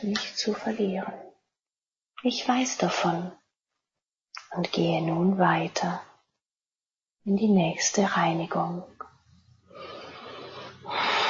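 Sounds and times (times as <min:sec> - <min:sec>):
speech: 0:00.0 - 0:01.3, 0:02.2 - 0:03.4, 0:04.5 - 0:06.1, 0:07.2 - 0:09.0
deep breathing in and out: 0:09.5 - 0:11.2.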